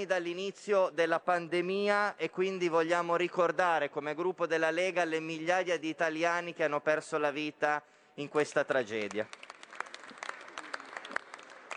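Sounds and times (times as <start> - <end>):
speech: 0.0 - 9.5
applause from a large group in a parliamentary chamber: 9.1 - 11.7.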